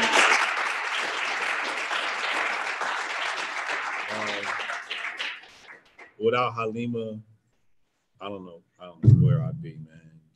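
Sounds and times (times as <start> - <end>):
audience applause: 0.0 - 6.0
speech: 6.2 - 7.3, 8.2 - 10.0.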